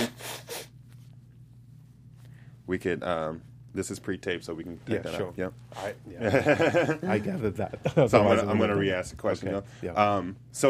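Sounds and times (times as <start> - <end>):
nose blowing: 0.0 - 0.8
faint low hum: 0.0 - 10.6
speech: 2.7 - 10.6
laughter: 6.2 - 8.3.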